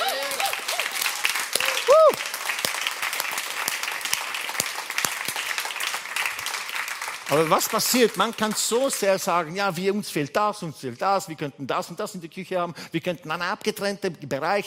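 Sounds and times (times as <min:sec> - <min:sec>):
people whooping and cheering: 0:00.0 - 0:02.5
audience applauding: 0:00.0 - 0:09.2
speech: 0:07.3 - 0:14.6.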